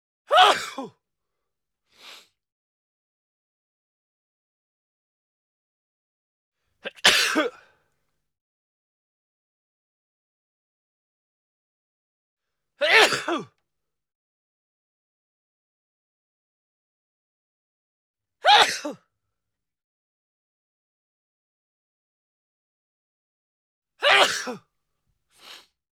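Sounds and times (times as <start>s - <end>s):
person sneezing: 0.3s - 1.0s, 6.9s - 7.7s, 12.8s - 13.5s, 18.4s - 19.0s, 24.0s - 24.6s.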